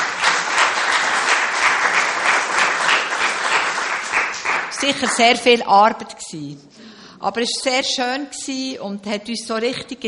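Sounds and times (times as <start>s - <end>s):
audience applause: 0.0s - 5.4s
speech: 4.8s - 10.0s.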